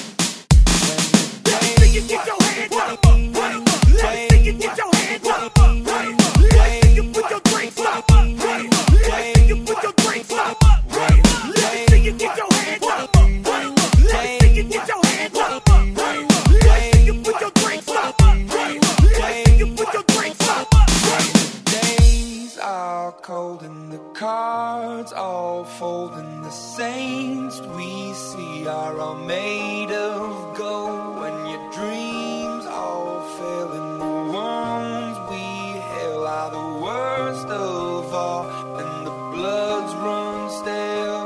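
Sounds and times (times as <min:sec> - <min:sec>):
party hype music: 0:00.6 - 0:22.6.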